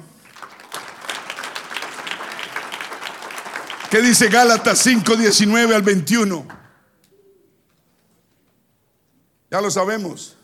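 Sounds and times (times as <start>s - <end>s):
audience applause: 0.0s - 5.8s
speech: 3.9s - 6.6s, 9.6s - 10.4s.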